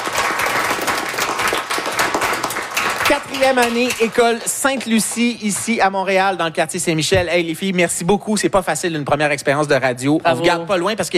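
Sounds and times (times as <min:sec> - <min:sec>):
group applauding loudly: 0:00.0 - 0:06.2
speech: 0:03.1 - 0:11.1.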